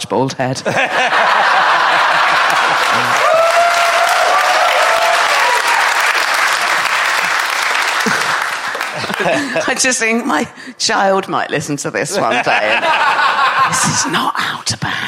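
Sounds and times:
speech: 0.1 - 1.3, 9.2 - 15.0
whoops and laughs: 0.8 - 5.9
crowd applause: 0.8 - 10.0.

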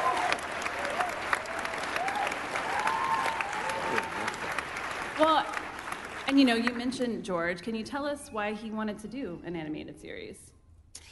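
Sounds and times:
faint voices and cheers: 0.0 - 4.6
crowd applause: 0.0 - 6.7
speech: 6.4 - 10.5.

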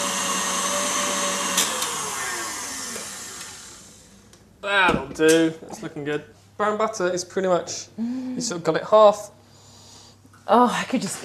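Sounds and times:
electric mixer whipping dough: 0.0 - 4.2
speech: 4.7 - 9.4, 10.5 - 11.2.

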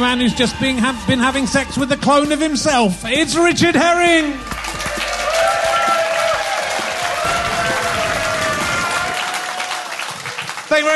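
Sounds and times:
speech: 0.0 - 4.6
theatre audience at the Leicester Square Theatre applauding a comedian's entrance: 4.4 - 10.9.

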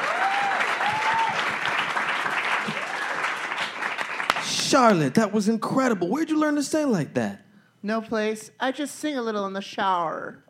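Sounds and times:
crowd applause: 0.0 - 5.0
speech: 4.7 - 10.4.

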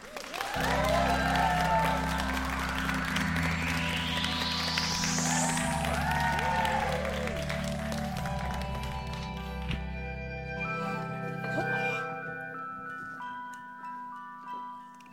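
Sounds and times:
live audience clapping and cheering to welcome two podcast guests: 0.0 - 10.1
steady tonal music with a rising sweep: 0.4 - 14.2.

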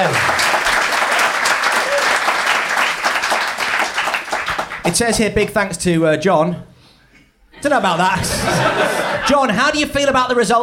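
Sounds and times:
live audience applause voting for contestants: 0.0 - 5.0
speech: 4.9 - 6.7, 7.6 - 10.6
laughter: 7.6 - 9.6.

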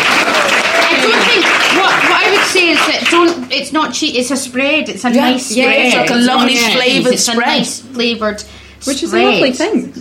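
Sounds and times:
people cheering: 0.0 - 2.9
round of applause from a group: 0.0 - 3.6
speech: 3.6 - 9.9.

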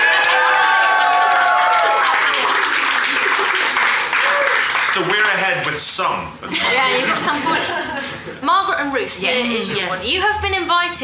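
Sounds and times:
crowd cheering wildly: 0.0 - 5.2
laughter: 2.4 - 4.3, 6.4 - 8.4
speech: 5.0 - 5.2, 5.8 - 11.0.

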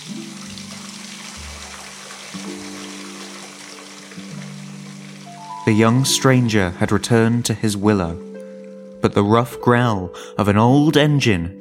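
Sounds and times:
water running from tap into watering can: 0.0 - 7.2
speech: 5.7 - 8.3, 9.0 - 11.5.

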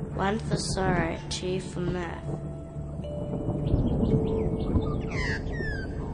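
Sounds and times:
speech: 0.2 - 2.5
Australian magpie calling: 3.8 - 6.1.

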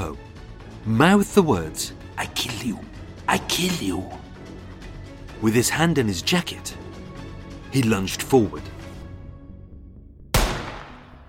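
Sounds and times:
speech: 0.8 - 4.2, 5.4 - 6.8, 7.7 - 8.7
gunshot fired at close range: 10.3 - 11.2.

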